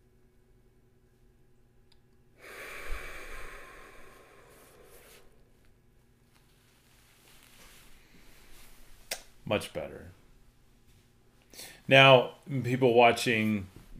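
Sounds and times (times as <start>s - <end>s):
deep breath exhaled forcefully: 2.4s - 5.5s
quiet breathing: 2.4s - 9.0s, 11.4s - 11.9s
speech: 9.5s - 10.2s, 11.9s - 13.8s.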